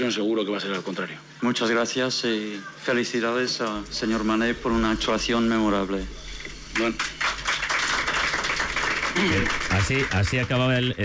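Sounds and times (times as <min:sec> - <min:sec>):
speech: 0:00.1 - 0:06.2, 0:06.8 - 0:07.2, 0:09.2 - 0:11.0
journalists applauding the Deportivo Alavés coach in the Westfalen stadium press room: 0:06.7 - 0:11.0.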